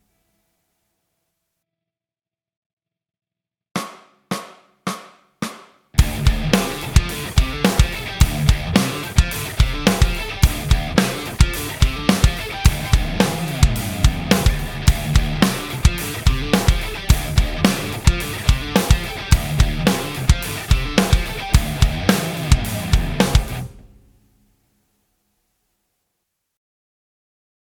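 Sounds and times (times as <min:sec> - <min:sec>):
backing track: 0:06.0 - 0:24.1.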